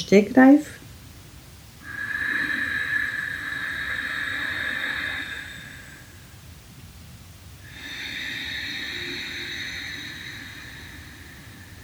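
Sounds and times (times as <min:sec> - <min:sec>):
Ujjayi breathing through constricted glottis: 0:01.8 - 0:06.3, 0:07.6 - 0:11.8.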